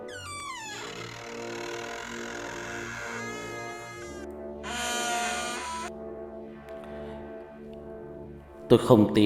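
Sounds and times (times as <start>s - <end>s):
door creaking open: 0.1s - 5.9s
speech: 8.7s - 9.2s.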